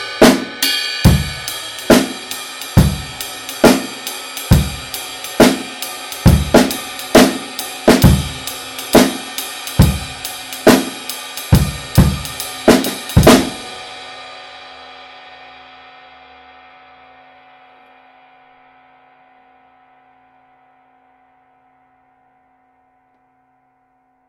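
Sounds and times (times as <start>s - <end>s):
medium 20 ride cymbal: 0.0s - 15.1s.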